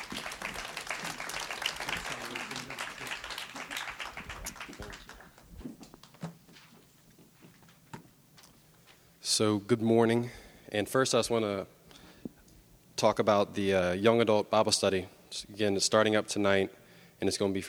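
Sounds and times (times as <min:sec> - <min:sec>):
church congregation clapping to welcome a speaker: 0:00.0 - 0:06.1
speech: 0:09.4 - 0:11.8, 0:13.0 - 0:17.6.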